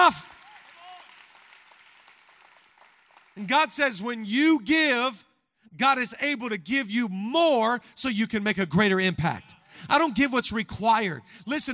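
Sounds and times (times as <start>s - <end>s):
audience clapping: 0.0s - 3.8s
speech: 0.1s - 0.3s, 3.4s - 11.7s.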